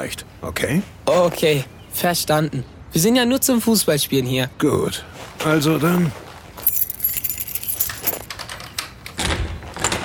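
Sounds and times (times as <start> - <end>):
speech: 0.0 - 6.2
bunch of keys jangling: 6.6 - 8.5
lock turning: 6.7 - 8.8.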